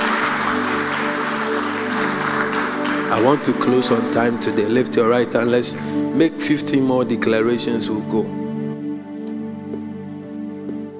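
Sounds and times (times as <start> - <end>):
audience clapping: 0.0 - 6.8
sustained musical tones: 0.0 - 10.8
speech: 3.1 - 8.4.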